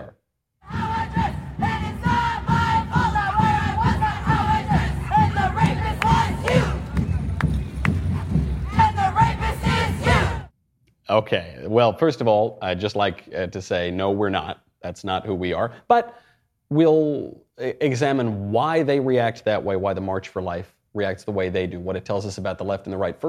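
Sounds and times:
protest crowd yelling: 0:00.7 - 0:10.5
speech: 0:11.2 - 0:23.2.

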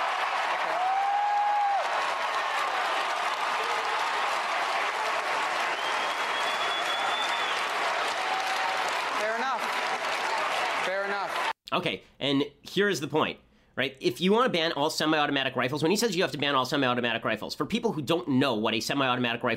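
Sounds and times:
crowd applauding at a speech: 0:00.0 - 0:11.6
speech: 0:11.7 - 0:19.5.

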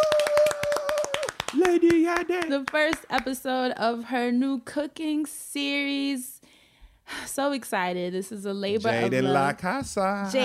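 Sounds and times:
people clapping: 0:00.0 - 0:03.4
speech: 0:01.7 - 0:06.4, 0:07.1 - 0:10.4.

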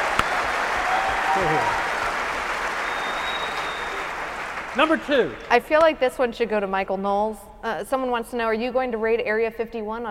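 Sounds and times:
faint cheer: 0:00.0 - 0:04.9
crowd applause: 0:00.0 - 0:05.5
speech: 0:01.4 - 0:01.8, 0:04.8 - 0:10.0.

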